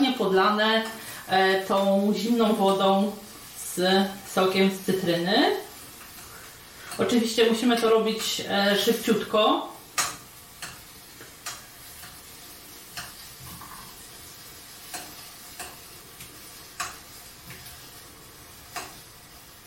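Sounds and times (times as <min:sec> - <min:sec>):
shrimp sizzling in a frying pan: 0:00.0 - 0:19.6
speech: 0:00.2 - 0:05.7, 0:07.0 - 0:09.7
sharp clicks and taps as shrimp are flipped: 0:14.9 - 0:17.6.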